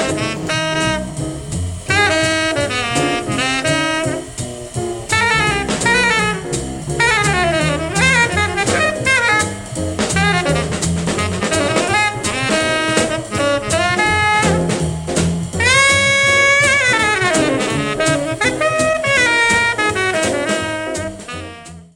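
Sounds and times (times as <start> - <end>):
bass playing blues: 0.0 - 21.9.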